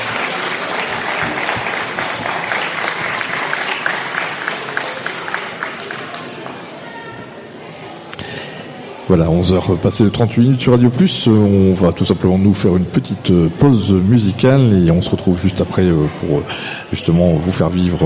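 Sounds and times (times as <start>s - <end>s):
audience applause: 0.0s - 6.8s
speech: 9.1s - 18.0s.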